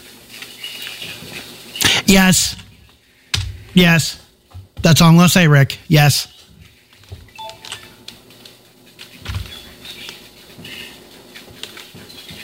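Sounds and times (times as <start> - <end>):
speech: 2.1 - 2.7, 3.8 - 4.2, 4.8 - 6.3
keyboard typing: 7.4 - 8.2.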